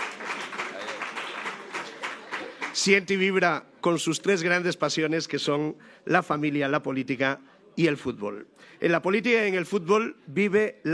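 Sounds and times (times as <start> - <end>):
audience applauding: 0.0 - 3.2
speech: 2.8 - 10.9.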